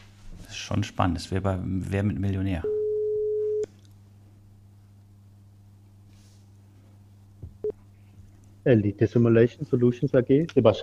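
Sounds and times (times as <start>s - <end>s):
speech: 0.7s - 2.8s, 8.7s - 10.8s
telephone ringback tone on an outgoing call: 2.7s - 3.6s.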